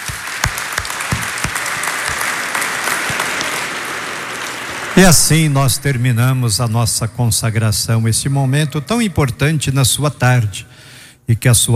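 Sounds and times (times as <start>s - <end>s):
audience applause: 0.0s - 5.6s
speech: 5.0s - 10.7s, 11.3s - 11.7s.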